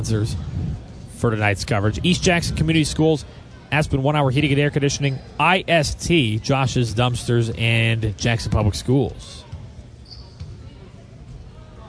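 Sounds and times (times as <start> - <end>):
speech: 0.0 - 9.4
steady crowd noise at a playoff game: 0.0 - 11.8
basketball free throw bouncing on the rim during a playoff game: 9.5 - 10.7.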